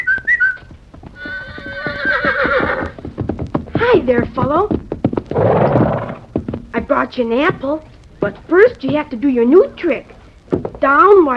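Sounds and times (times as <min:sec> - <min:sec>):
high whistle: 0:00.0 - 0:00.6
horse hooves clip-clopping in a trotting rhythm: 0:00.0 - 0:11.3
horse neighing: 0:01.2 - 0:03.0, 0:05.3 - 0:06.3
speech: 0:04.0 - 0:04.8, 0:07.0 - 0:10.1, 0:10.8 - 0:11.3.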